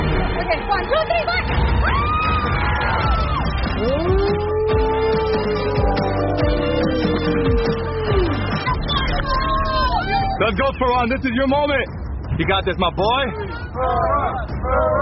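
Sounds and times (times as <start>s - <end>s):
crowd cheering: 0.0s - 10.4s
speech: 0.5s - 2.2s, 10.4s - 15.0s.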